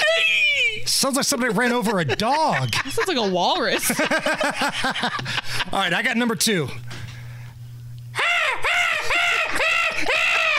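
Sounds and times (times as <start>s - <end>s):
speech: 0.9s - 7.0s
laughter: 1.3s - 6.0s, 8.2s - 10.5s
person doing a seagull impression: 8.2s - 10.5s.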